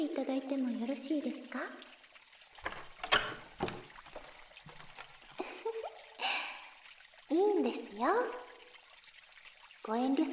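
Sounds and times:
speech: 0.0s - 1.9s, 7.7s - 8.4s, 9.9s - 10.3s
water poured to rinse a customer's feet: 0.0s - 10.3s.

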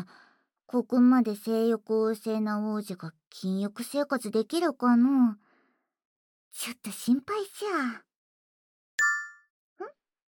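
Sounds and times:
speech: 0.0s - 5.4s, 6.5s - 8.1s
phone app notification chime from a game: 9.0s - 9.5s.

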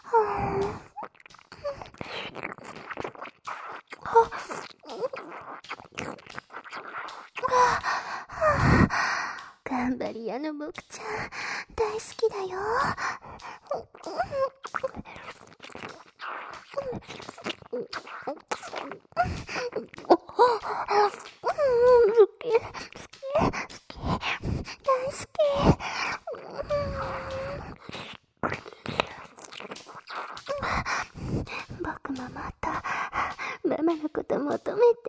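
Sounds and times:
soft moans and gasps: 0.0s - 10.0s, 10.7s - 35.0s
heavy breathing and sighs: 7.4s - 9.7s, 10.8s - 14.6s, 19.2s - 29.2s, 30.1s - 33.7s.

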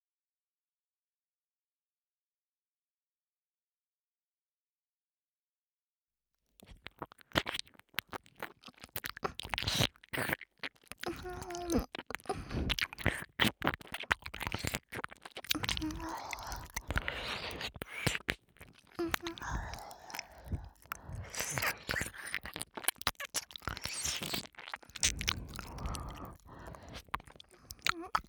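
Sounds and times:
ear licking: 6.6s - 28.2s.

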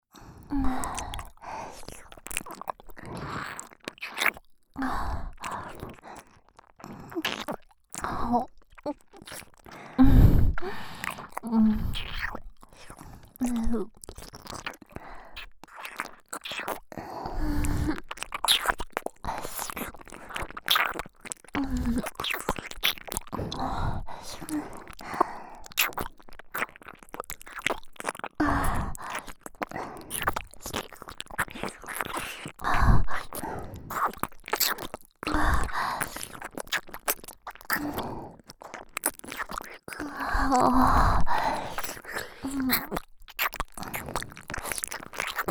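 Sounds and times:
licking both ears: 0.7s - 45.4s.

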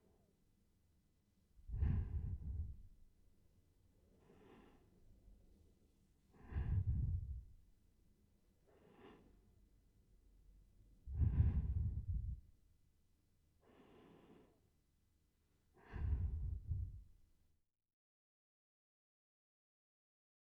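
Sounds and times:
sleeping breath: 1.6s - 3.1s, 4.1s - 5.1s, 6.3s - 7.6s, 8.6s - 9.6s, 11.0s - 12.5s, 13.6s - 14.6s, 15.7s - 17.2s.

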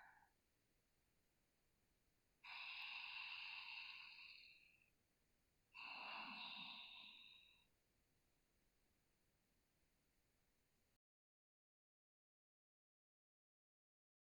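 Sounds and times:
person sleeping breathing through nose: 2.4s - 4.8s, 5.8s - 7.5s.

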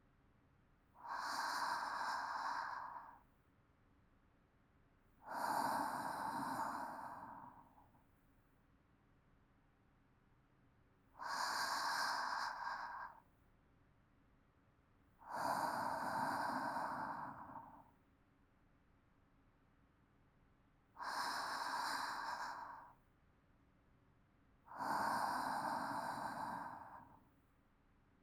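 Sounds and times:
calm sleep breathing: 1.0s - 3.3s, 5.2s - 8.0s, 11.2s - 13.3s, 15.2s - 18.0s, 21.0s - 23.0s, 24.7s - 27.4s.

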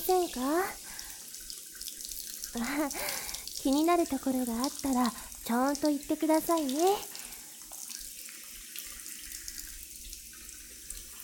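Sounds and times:
shower water running: 0.0s - 11.2s
speech: 0.3s - 0.8s, 2.5s - 7.1s.

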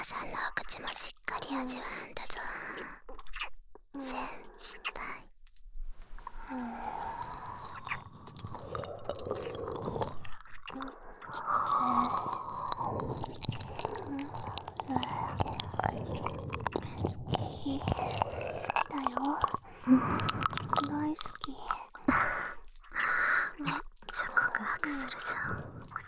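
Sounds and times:
breathy whispering: 0.0s - 5.3s, 6.3s - 26.0s
speech: 0.5s - 5.4s, 6.5s - 7.5s
ear-licking mouth sounds: 6.2s - 26.0s.

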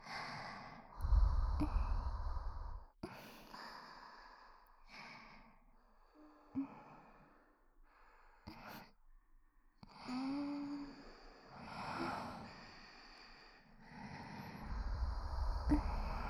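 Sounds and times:
sweet sighing breaths: 0.0s - 5.6s, 10.0s - 16.2s
soft sleeping breaths: 0.0s - 16.2s
nose breathing: 1.0s - 2.9s, 14.2s - 16.2s.

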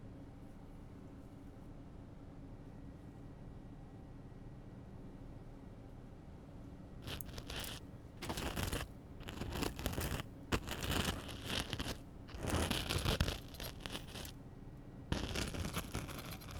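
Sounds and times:
ear cleaning in the left ear with tweezers, spoon and spiral tools: 7.0s - 14.4s, 15.1s - 16.5s.

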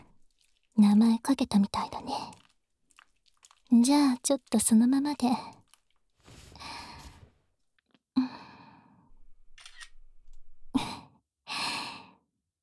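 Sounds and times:
speech: 0.9s - 2.4s, 3.7s - 5.6s
camera shutter clicks taking a photo: 9.6s - 9.9s.

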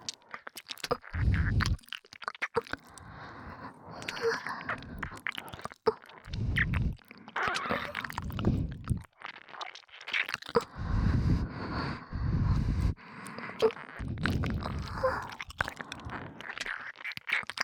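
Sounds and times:
ear licking in both ears: 0.0s - 17.6s
breathing sounds in both ears: 2.7s - 9.0s, 10.6s - 16.7s.

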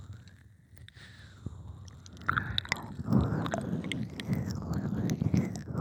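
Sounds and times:
ASMR ear licking in one ear: 1.8s - 5.7s.

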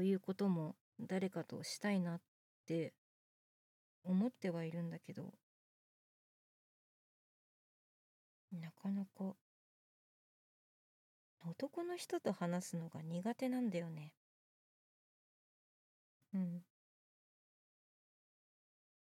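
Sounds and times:
boyish new female voice actress performing: 0.0s - 3.0s, 4.1s - 5.4s, 8.5s - 9.4s, 11.4s - 14.2s.

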